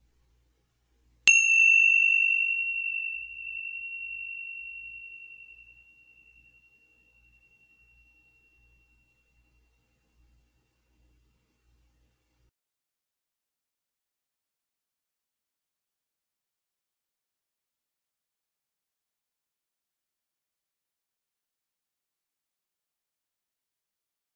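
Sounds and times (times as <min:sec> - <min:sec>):
bells ringing: 0:01.3 - 0:06.8.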